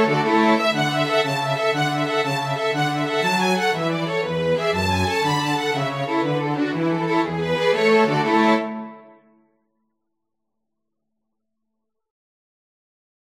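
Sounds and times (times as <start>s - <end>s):
Irish jig medley: 0.0s - 9.1s.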